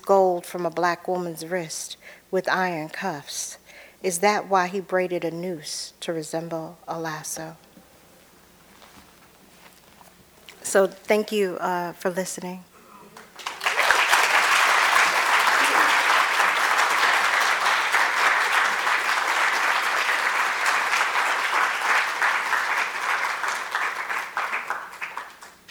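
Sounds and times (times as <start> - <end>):
speech: 0.0 - 7.7, 10.7 - 12.7
audience applause: 13.1 - 25.6.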